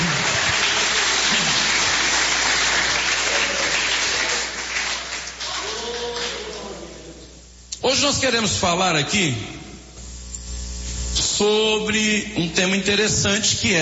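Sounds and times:
audience clapping: 0:00.0 - 0:07.0
speech: 0:08.0 - 0:09.6, 0:11.4 - 0:13.7.

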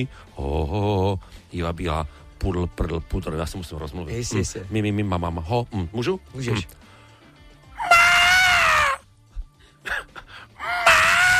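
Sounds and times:
speech: 0:00.0 - 0:06.9
person imitating a wapiti elk's bugle: 0:07.8 - 0:09.0, 0:10.6 - 0:11.3
breathy huffs and grunts: 0:09.4 - 0:10.7.

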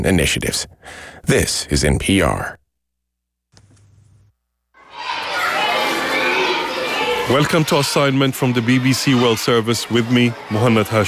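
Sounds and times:
speech: 0:00.0 - 0:02.6, 0:07.3 - 0:11.0
excited schoolboys chattering and shouting in a primary school corridor in Khartoum: 0:04.8 - 0:11.0.

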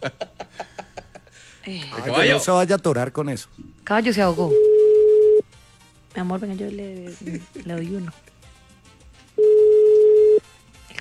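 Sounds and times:
speech: 0:00.0 - 0:00.3, 0:01.6 - 0:04.7, 0:06.2 - 0:08.3
telephone dial tone: 0:04.6 - 0:05.4, 0:09.4 - 0:10.4.

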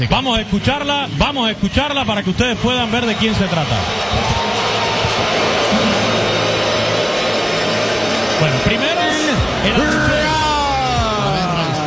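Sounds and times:
speech: 0:00.0 - 0:04.4, 0:08.4 - 0:10.4
stadium crowd booing: 0:02.5 - 0:11.8.

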